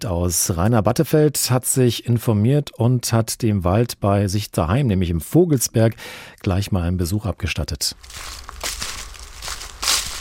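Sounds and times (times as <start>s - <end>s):
speech: 0.0s - 8.8s
footsteps crunching over a forest floor: 8.0s - 10.2s.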